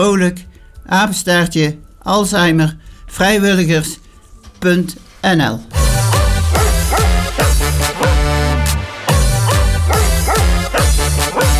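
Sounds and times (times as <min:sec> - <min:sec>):
speech: 0:00.0 - 0:04.0, 0:04.6 - 0:05.8
musical backing: 0:00.0 - 0:11.5
dog barking: 0:06.5 - 0:08.3, 0:09.2 - 0:11.5.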